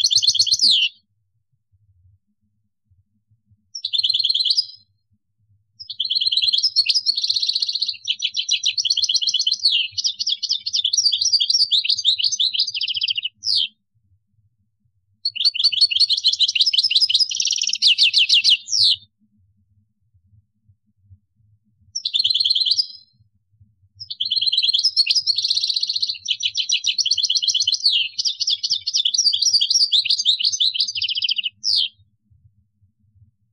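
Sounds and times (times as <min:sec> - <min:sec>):
European goldfinch singing: 0:00.0 - 0:01.0, 0:03.8 - 0:04.8, 0:05.8 - 0:13.7, 0:15.2 - 0:19.0, 0:22.0 - 0:23.0, 0:24.0 - 0:32.0.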